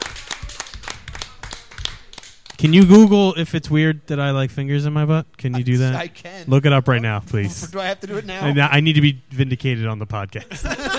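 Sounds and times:
small group applauding a game show winner: 0:00.0 - 0:03.2
speech: 0:02.6 - 0:10.9
laughter: 0:10.4 - 0:10.9.

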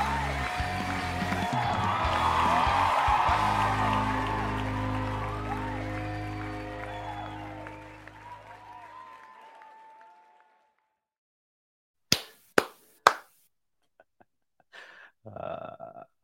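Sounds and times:
audience applause welcoming a show host: 0:00.0 - 0:10.8, 0:12.6 - 0:13.2.

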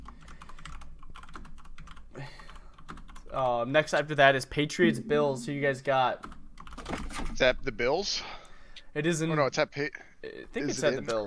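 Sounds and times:
typing on a computer keyboard: 0:00.0 - 0:03.4, 0:06.2 - 0:07.1
speech: 0:03.4 - 0:06.3, 0:07.4 - 0:08.3, 0:09.0 - 0:11.2.

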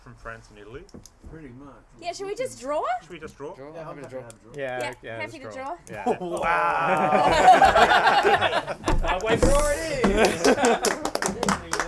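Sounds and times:
speech: 0:00.1 - 0:11.0
hand clapping: 0:05.6 - 0:11.8
laughter: 0:06.0 - 0:09.4, 0:10.0 - 0:11.1.

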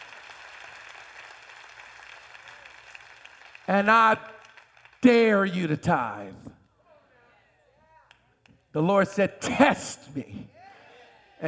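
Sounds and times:
audience clapping: 0:00.0 - 0:06.2
speech: 0:03.7 - 0:04.4, 0:05.0 - 0:06.5, 0:08.7 - 0:10.5.

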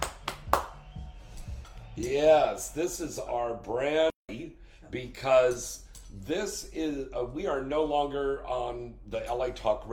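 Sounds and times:
applause sound effect: 0:00.0 - 0:01.2
speech: 0:02.0 - 0:09.9.

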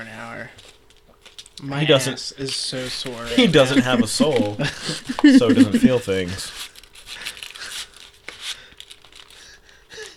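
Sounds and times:
chocolate bar wrapper crinkling pulled from a purse: 0:00.6 - 0:01.6, 0:06.4 - 0:10.1
speech: 0:01.6 - 0:06.7
laughter: 0:03.2 - 0:06.5.

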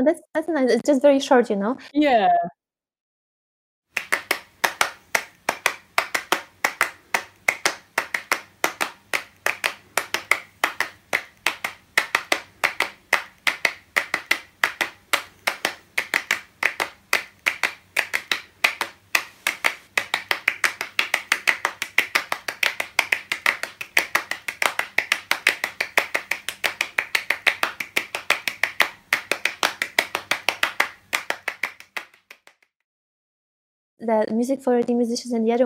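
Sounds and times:
speech: 0:00.0 - 0:02.6, 0:34.1 - 0:35.6
rhythmic hand clapping piece: 0:03.9 - 0:32.7.

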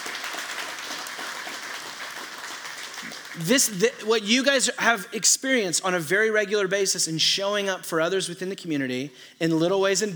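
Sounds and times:
audience applause: 0:00.0 - 0:03.7
speech: 0:03.4 - 0:10.1.

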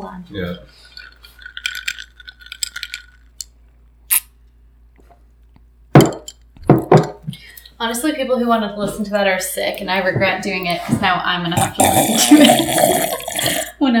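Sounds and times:
speech: 0:00.2 - 0:00.9, 0:07.8 - 0:13.9
drinking out of a glass through a straw: 0:00.8 - 0:03.2, 0:11.6 - 0:13.8.

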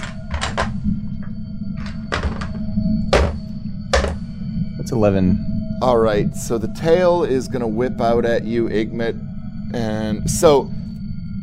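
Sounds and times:
steady low rumble: 0:00.0 - 0:11.4
dice being rolled: 0:01.8 - 0:02.6, 0:03.2 - 0:03.4
speech: 0:04.9 - 0:10.8.

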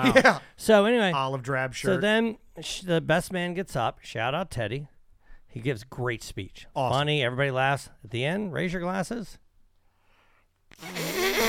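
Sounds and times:
speech: 0:00.0 - 0:04.9, 0:05.5 - 0:09.4, 0:10.8 - 0:11.4
raspy buzzing fart: 0:10.7 - 0:11.4.

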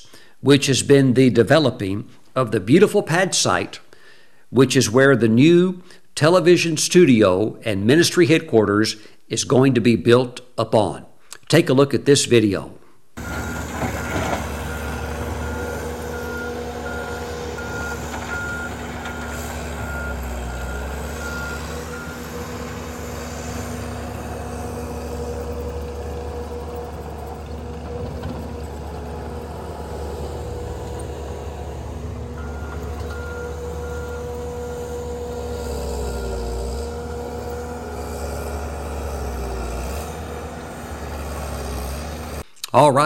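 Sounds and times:
speech: 0:00.4 - 0:03.8, 0:04.5 - 0:13.4, 0:42.8 - 0:43.0
skid steer reversing beeps: 0:13.2 - 0:22.3, 0:32.4 - 0:35.0
skid steer loaders engines droning: 0:13.2 - 0:42.4.

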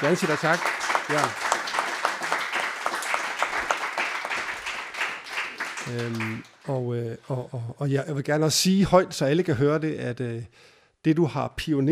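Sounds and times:
speech: 0:00.0 - 0:01.4, 0:05.9 - 0:11.8
audience clapping: 0:00.0 - 0:06.8.

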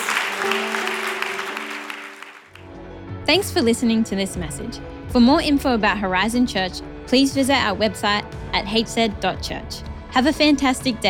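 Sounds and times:
audience round of applause: 0:00.0 - 0:02.6
speech: 0:00.4 - 0:00.8, 0:03.3 - 0:11.0.

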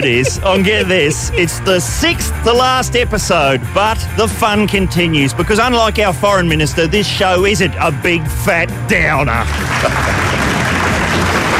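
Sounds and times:
laughter: 0:00.0 - 0:02.5, 0:09.4 - 0:11.5
speech: 0:00.0 - 0:10.4
applause: 0:09.3 - 0:11.5.

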